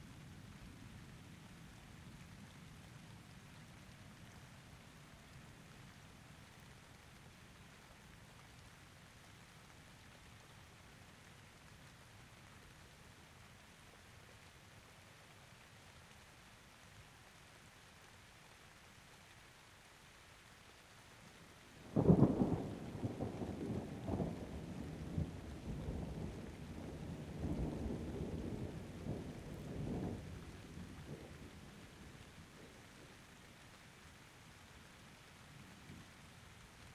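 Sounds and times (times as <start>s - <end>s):
rain: 0.0s - 36.9s.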